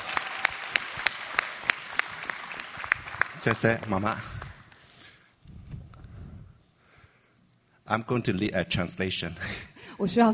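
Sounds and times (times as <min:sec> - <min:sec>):
audience applause: 0:00.0 - 0:04.6
speech: 0:03.4 - 0:04.4, 0:07.9 - 0:10.3.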